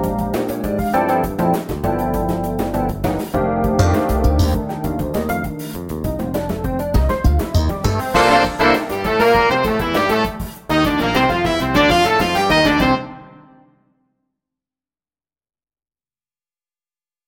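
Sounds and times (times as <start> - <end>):
auxiliary percussion playalong in funk and jazz style: 0.0 - 13.1.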